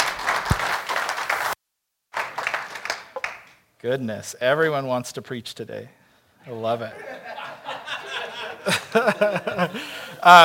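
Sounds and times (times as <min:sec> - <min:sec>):
audience applause: 0:00.0 - 0:01.6, 0:02.2 - 0:03.5
speech: 0:03.8 - 0:07.3, 0:08.6 - 0:10.4
laughter: 0:06.8 - 0:10.4.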